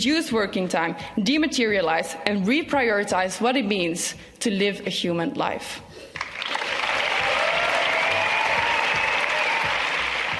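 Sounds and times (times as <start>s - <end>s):
speech: 0.0s - 6.1s
audience applause from a large audience: 6.2s - 10.3s
whistle or cheer: 7.2s - 10.1s.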